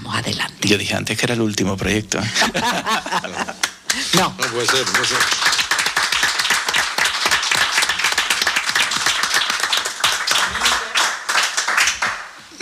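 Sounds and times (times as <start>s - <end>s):
speech: 0.2s - 5.6s
laughter: 2.2s - 5.2s
audience applause: 2.9s - 12.6s.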